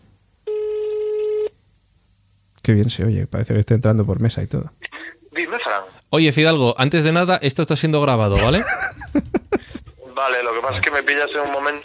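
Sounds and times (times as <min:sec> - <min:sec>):
faint hiss: 0:00.0 - 0:11.8
mobile telephone ringback tone with poor coverage: 0:00.5 - 0:01.5
speech: 0:02.6 - 0:09.2, 0:10.2 - 0:11.8
laughter: 0:08.3 - 0:10.0.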